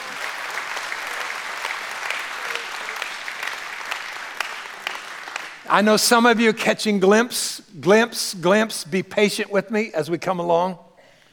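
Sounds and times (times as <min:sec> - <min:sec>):
audience clapping: 0:00.0 - 0:06.3
speech: 0:05.7 - 0:10.8.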